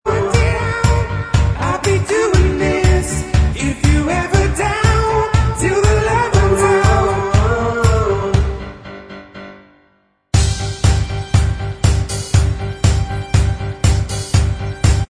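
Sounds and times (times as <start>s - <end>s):
backing vocals: 0.0s - 8.8s
backing track: 0.0s - 9.6s, 10.4s - 15.0s.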